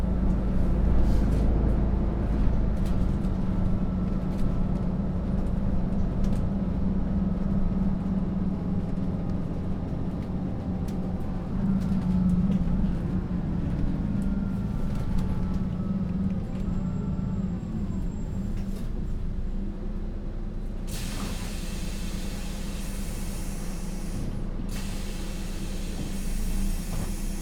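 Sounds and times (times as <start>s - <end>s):
bus ride heard from inside the bus: 0.0s - 27.4s.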